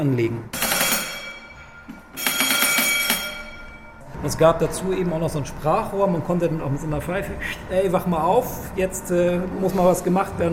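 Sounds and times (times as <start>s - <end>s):
speech: 0.0s - 0.6s, 4.2s - 10.5s
steamship engine order telegraph bell ringing: 0.5s - 4.1s.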